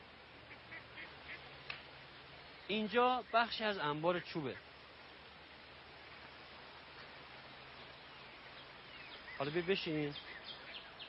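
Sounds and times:
hiss: 0.0 - 11.0
ducks quacking on a pond: 0.4 - 1.4
speech: 2.7 - 4.7, 9.4 - 10.4.

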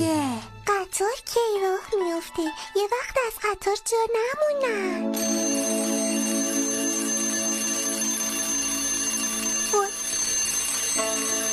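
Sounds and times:
speech: 1.0 - 5.5
alarm ringing: 5.0 - 11.5.

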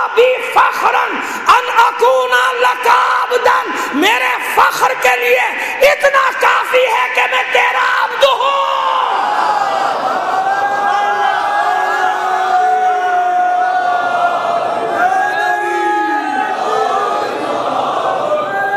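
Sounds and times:
speech: 0.2 - 9.0
crowd chanting slogans: 9.1 - 18.6.

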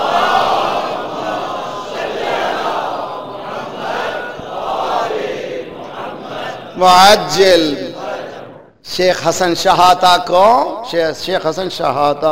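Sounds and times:
large crowd reciting salawat in unison: 0.0 - 8.8
speech: 6.8 - 7.8, 8.9 - 12.3.

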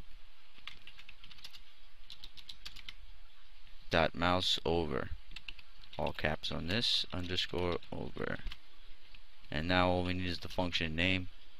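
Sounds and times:
typing code on a computer keyboard: 0.5 - 3.0, 5.3 - 8.6
speech: 3.9 - 5.2, 6.0 - 8.6, 9.5 - 11.4.

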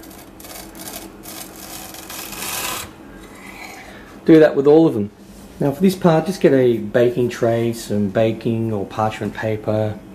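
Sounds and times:
sharp knife cutting wafer fingers down the middle: 0.0 - 3.0
speech: 4.2 - 10.1.

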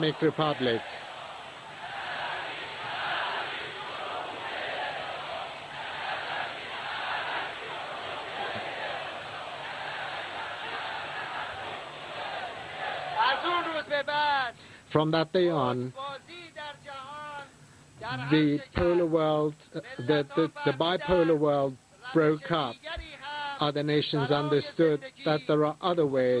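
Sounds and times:
speech: 0.0 - 1.1, 14.9 - 16.0, 18.1 - 22.9, 23.6 - 26.3
crowd chanting slogans in a square: 0.0 - 13.9.

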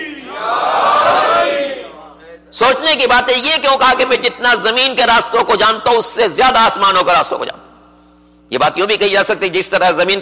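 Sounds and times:
congregation at a religious sermon shouting its answer to a slogan: 0.0 - 2.0
speech: 2.6 - 7.6, 8.5 - 10.2.

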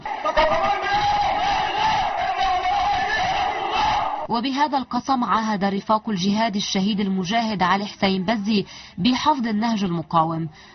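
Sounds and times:
large funeral crowd chanting slogans: 0.0 - 4.3
speech: 4.3 - 10.7.

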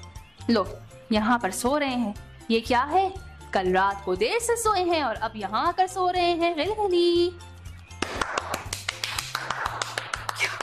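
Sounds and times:
speech: 0.5 - 7.5
people clapping: 8.0 - 10.6.

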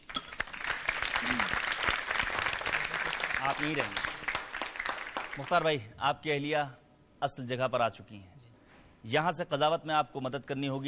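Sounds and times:
crowd applause: 0.6 - 5.6
speech: 3.4 - 4.1, 5.4 - 8.3, 9.0 - 10.8.

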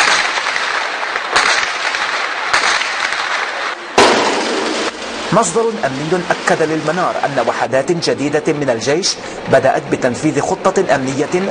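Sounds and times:
sustained medium-weapons gunfire: 0.0 - 5.0
speech: 5.3 - 11.4.

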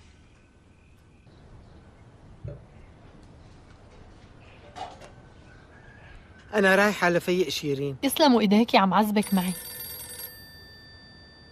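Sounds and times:
speech: 6.6 - 9.7
telephone ringing with a bright electronic ring: 9.0 - 11.5.

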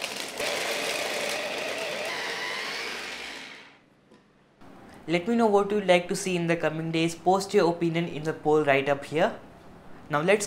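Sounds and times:
blender pulsing vegetables: 0.0 - 3.8
speech: 5.0 - 9.5, 10.1 - 10.4.

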